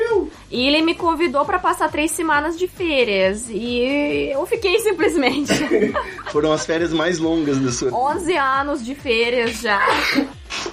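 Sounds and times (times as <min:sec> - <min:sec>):
speech: 0:00.5 - 0:10.4
laughter: 0:05.0 - 0:08.0
sneeze: 0:09.8 - 0:10.7.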